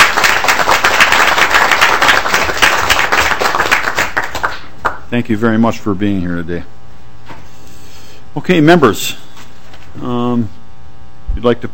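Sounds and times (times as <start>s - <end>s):
audience applauding a visiting group of students: 0.0s - 5.0s
speech: 5.1s - 6.8s, 8.4s - 9.2s, 10.0s - 10.6s, 11.4s - 11.7s.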